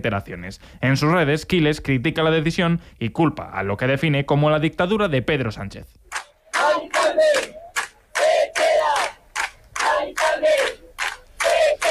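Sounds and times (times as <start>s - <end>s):
speech: 0.0s - 6.0s
crowd of neighbors shouting protest chants: 6.4s - 9.2s, 9.8s - 11.9s.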